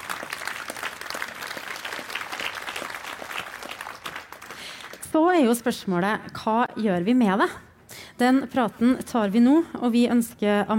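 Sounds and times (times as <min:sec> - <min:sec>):
audience clapping: 0:00.0 - 0:05.1
speech: 0:05.2 - 0:10.7.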